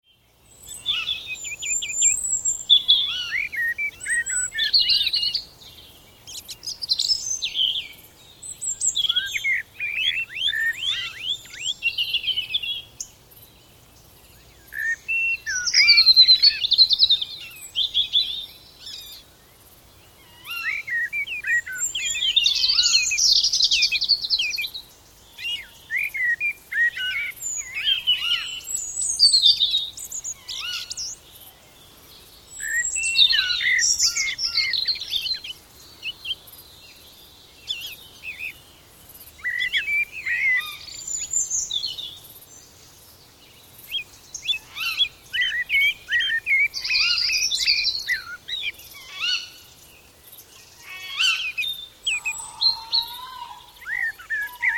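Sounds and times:
woodland birds singing in early morning: 0:00.0 - 0:54.7
owl hooting: 0:52.1 - 0:54.7.

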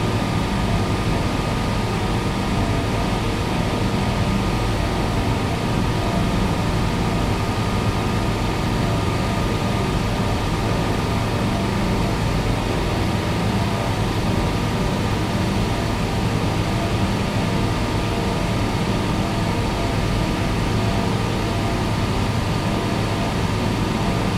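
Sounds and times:
industrial plant room ambience: 0:00.0 - 0:24.3.

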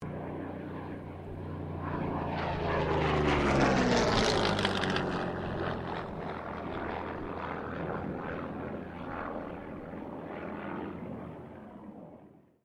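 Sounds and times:
Russian Yakovlev Yak-9 fighter plane passing: 0:00.0 - 0:12.4.

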